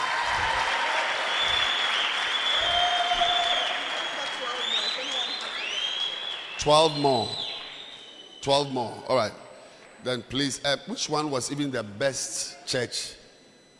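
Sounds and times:
audience clapping hands: 0:00.0 - 0:07.8
speech: 0:06.6 - 0:07.4, 0:08.4 - 0:09.4, 0:10.0 - 0:13.2.

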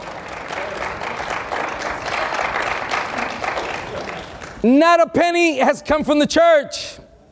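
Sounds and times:
crowd clapping: 0:00.0 - 0:04.6
speech: 0:04.6 - 0:07.0.

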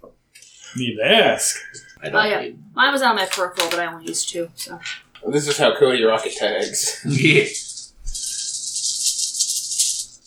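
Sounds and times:
laughter: 0:00.6 - 0:08.6
speech: 0:00.7 - 0:07.7
dice rattling: 0:03.0 - 0:10.2.

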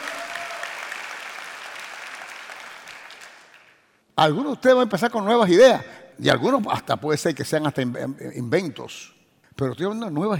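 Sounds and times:
audience applause: 0:00.0 - 0:03.8
speech: 0:04.2 - 0:10.3.

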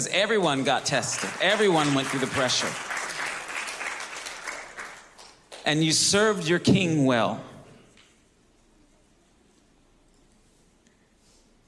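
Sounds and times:
speech: 0:00.0 - 0:02.9, 0:05.6 - 0:07.5
audience applause: 0:00.2 - 0:05.6.

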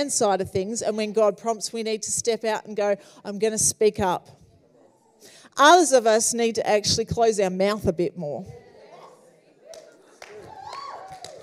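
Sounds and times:
speech: 0:00.0 - 0:04.4, 0:05.2 - 0:08.6
a few people clapping: 0:09.6 - 0:11.4.

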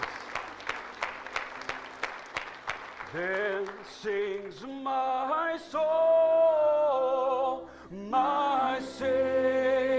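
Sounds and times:
audience clapping: 0:00.0 - 0:04.8
speech: 0:03.1 - 0:09.8.

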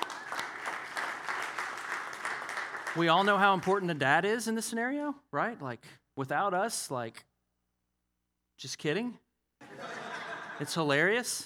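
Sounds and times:
audience clapping: 0:00.0 - 0:04.2
speech: 0:03.0 - 0:07.3, 0:08.6 - 0:09.2, 0:10.6 - 0:11.4
laughter: 0:09.6 - 0:11.0.

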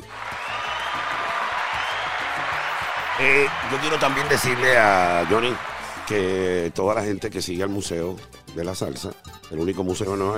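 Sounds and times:
audience applause: 0:00.0 - 0:06.8
speech: 0:03.2 - 0:10.3.

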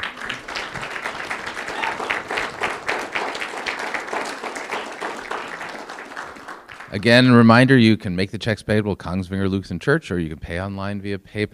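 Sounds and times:
round of applause: 0:00.0 - 0:07.4
speech: 0:06.9 - 0:11.5.

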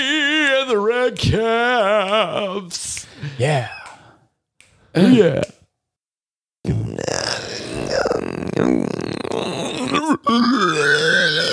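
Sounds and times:
speech: 0:00.7 - 0:03.8, 0:05.0 - 0:05.6
burp: 0:06.6 - 0:11.5.

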